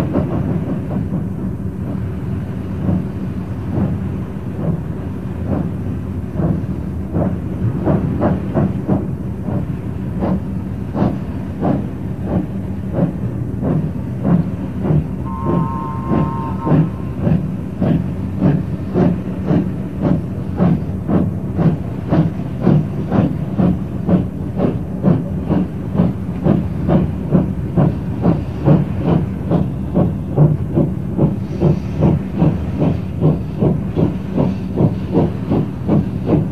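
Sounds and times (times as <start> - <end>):
railway in Alsdorf: 0.0 - 36.5
spinning mine whistles at a railway in Alsdorf: 15.2 - 18.0.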